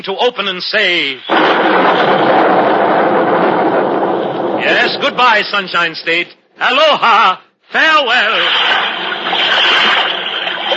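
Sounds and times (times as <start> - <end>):
speech: 0.0 - 3.5, 4.6 - 10.1
Los Angeles River water splashing and cascading down mountains: 8.3 - 10.7.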